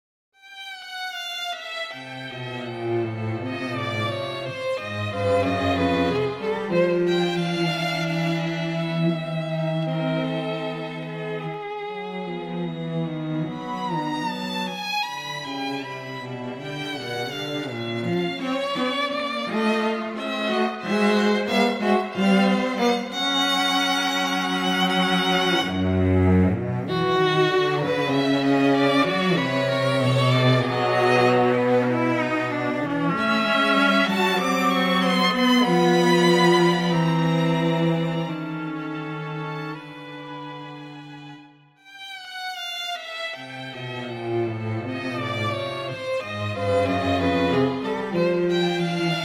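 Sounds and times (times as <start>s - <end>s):
microtonal string quartet playing: 0.4s - 49.2s.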